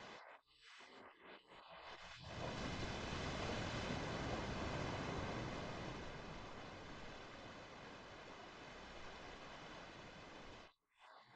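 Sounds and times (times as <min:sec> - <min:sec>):
ocean waves: 0:02.4 - 0:10.7.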